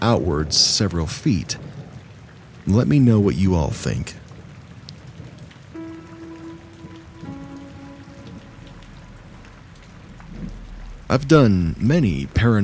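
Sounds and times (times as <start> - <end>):
rain falling: 0.0 - 12.6
speech: 0.1 - 1.8, 2.6 - 4.2, 11.1 - 12.6
low humming tone: 5.8 - 12.2.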